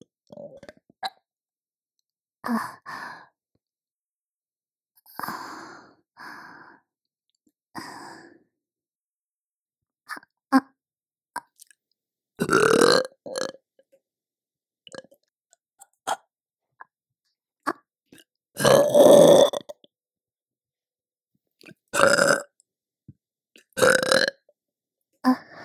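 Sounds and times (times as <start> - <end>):
person burping for ASMR: 12.4 - 13.6, 18.6 - 19.7, 22.0 - 22.5, 23.8 - 24.4.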